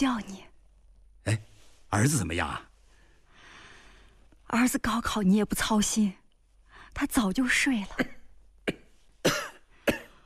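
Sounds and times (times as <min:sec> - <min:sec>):
speech: 0:00.0 - 0:00.5, 0:01.2 - 0:02.7, 0:04.5 - 0:06.2, 0:06.9 - 0:08.2
person with a lung nodule coughing harshly: 0:08.0 - 0:10.2.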